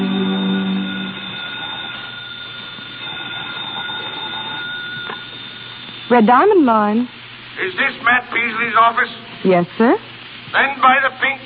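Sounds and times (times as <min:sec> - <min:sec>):
telephone ringing: 0:00.0 - 0:06.5
speech: 0:06.1 - 0:11.4.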